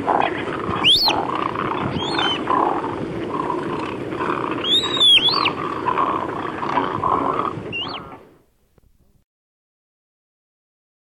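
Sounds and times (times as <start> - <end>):
Caspian tern rasping calls: 0.0 - 8.3
hoarse background chorus: 0.0 - 8.3.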